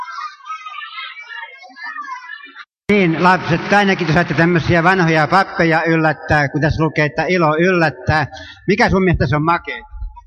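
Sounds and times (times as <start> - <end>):
children shouting at a small demonstration: 0.0 - 6.1
speech: 1.6 - 9.9.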